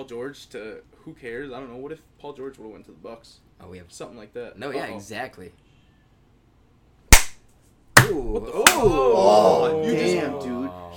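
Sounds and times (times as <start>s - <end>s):
speech: 0.0s - 5.6s, 8.1s - 10.9s
hand claps swatting at a house fly: 7.1s - 7.4s, 8.0s - 9.0s.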